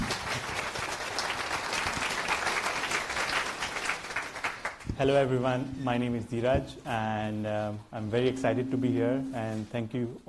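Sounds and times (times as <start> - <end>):
audience applause: 0.0 - 4.9
speech: 5.0 - 10.2.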